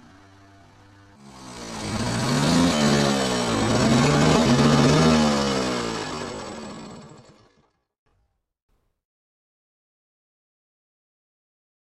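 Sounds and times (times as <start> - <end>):
car driving: 0.0 - 6.9
tractor: 0.0 - 7.9
motorcycle: 0.0 - 8.3.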